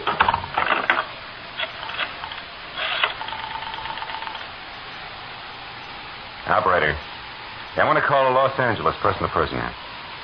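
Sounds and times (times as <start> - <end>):
telephone dial ratcheting clicks and whirs: 0.0 - 4.5
faint steady hum: 0.0 - 10.2
speech: 7.8 - 9.8.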